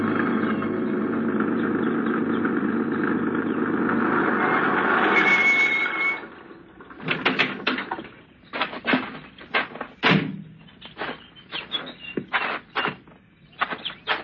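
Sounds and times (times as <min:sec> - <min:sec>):
truck engine droning driving down a hot dusty street: 0:00.0 - 0:14.2
clattering knocks: 0:06.9 - 0:14.2.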